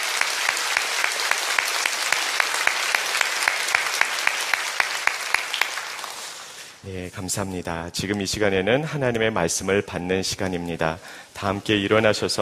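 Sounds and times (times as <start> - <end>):
audience applause: 0.0 - 6.6
speech: 6.8 - 12.4.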